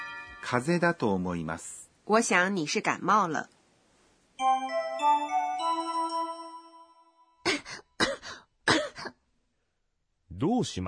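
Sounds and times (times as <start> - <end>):
speech: 0.5 - 3.6, 4.4 - 5.2, 10.4 - 10.8
person coughing: 7.5 - 9.2.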